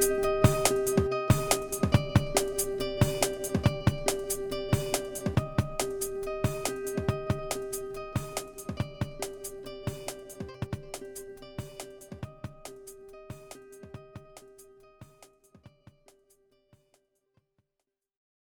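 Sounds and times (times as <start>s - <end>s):
jazz music: 0.0s - 10.4s.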